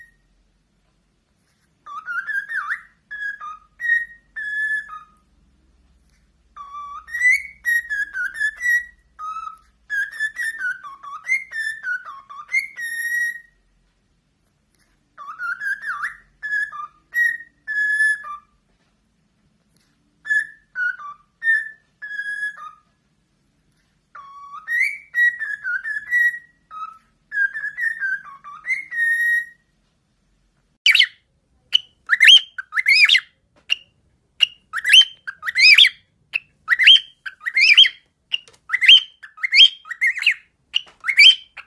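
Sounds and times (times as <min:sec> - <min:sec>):
cockatiel whistling: 0:01.8 - 0:05.3, 0:06.5 - 0:13.6, 0:15.2 - 0:18.6, 0:20.2 - 0:23.0, 0:24.1 - 0:29.7, 0:30.8 - 0:41.6.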